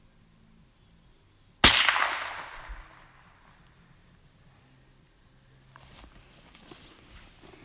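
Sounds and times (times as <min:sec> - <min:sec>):
gunshot from a scoped gun: 0:01.6 - 0:03.2.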